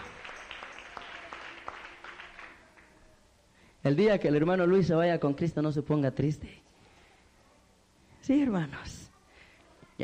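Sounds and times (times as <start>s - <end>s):
audience applauding: 0.0s - 2.9s
speech: 3.8s - 6.6s, 8.3s - 9.0s.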